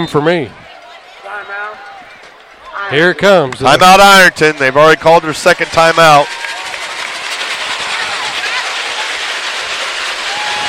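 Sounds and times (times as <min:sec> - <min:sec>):
speech: 0:00.0 - 0:00.6, 0:02.8 - 0:06.4
heavy rain falling: 0:06.3 - 0:10.6.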